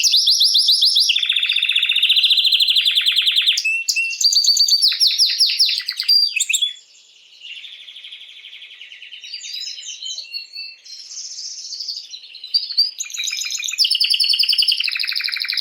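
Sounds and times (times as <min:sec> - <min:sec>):
canary singing fast rolling trills: 0:00.0 - 0:06.8, 0:09.4 - 0:15.5.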